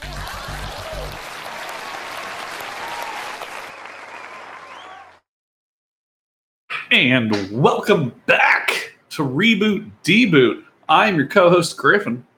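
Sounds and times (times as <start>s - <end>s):
audience applause: 0.0s - 5.2s
speech: 6.9s - 12.3s.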